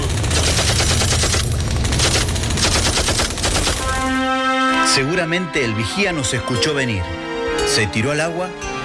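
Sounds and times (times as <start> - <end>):
gunfire from an attacking armed force: 0.0 - 4.3
speech: 5.0 - 8.6.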